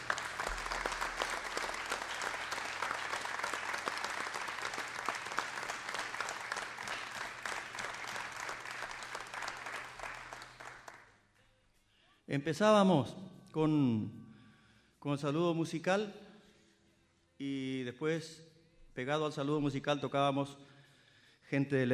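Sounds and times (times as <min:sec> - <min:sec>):
audience applause: 0:00.0 - 0:11.1
speech: 0:12.3 - 0:14.2, 0:15.0 - 0:16.2, 0:17.4 - 0:20.7, 0:21.5 - 0:21.9.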